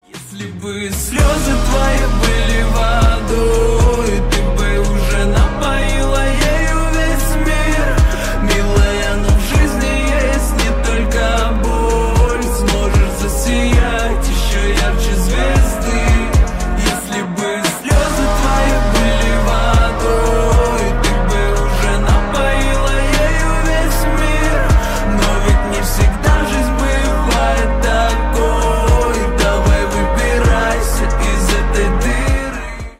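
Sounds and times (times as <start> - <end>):
slowed reverb music: 0.2 - 32.9.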